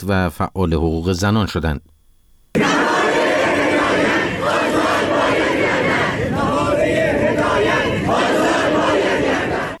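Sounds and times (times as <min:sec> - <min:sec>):
speech: 0:00.0 - 0:01.9
protesting student crowd chanting: 0:02.6 - 0:09.7.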